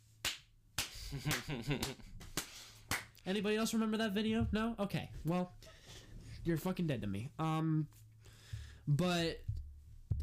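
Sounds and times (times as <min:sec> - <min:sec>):
hand clapping: 0:00.2 - 0:03.2
speech: 0:01.1 - 0:02.2, 0:03.2 - 0:05.8, 0:06.4 - 0:08.0, 0:08.8 - 0:09.5.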